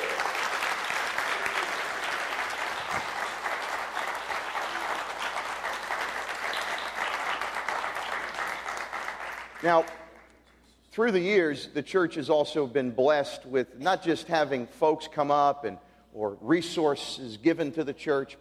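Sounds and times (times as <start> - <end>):
audience applauding a visiting church group: 0.0 - 10.4
speech: 9.6 - 10.0, 11.0 - 18.4.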